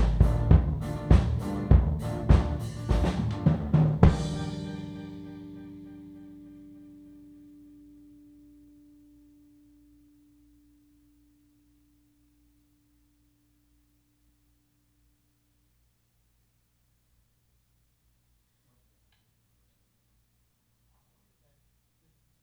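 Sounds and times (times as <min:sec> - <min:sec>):
kick drum: 0:00.0 - 0:04.4.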